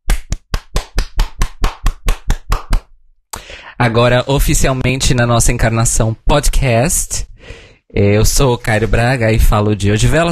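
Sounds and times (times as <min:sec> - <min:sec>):
hand claps: 0:00.0 - 0:03.0
speech: 0:03.8 - 0:10.3.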